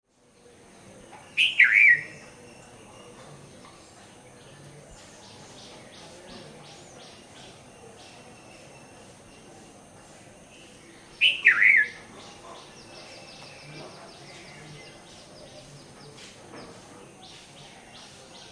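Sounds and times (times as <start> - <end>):
soft bird chatter: 0.1 - 18.5
Red-vented bulbul song: 1.3 - 2.6, 10.5 - 15.7.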